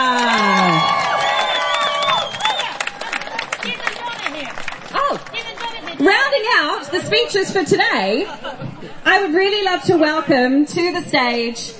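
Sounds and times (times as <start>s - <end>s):
crowd cheering with high whoops: 0.0s - 5.2s
crowd applauding: 0.0s - 6.7s
speech: 7.1s - 11.7s.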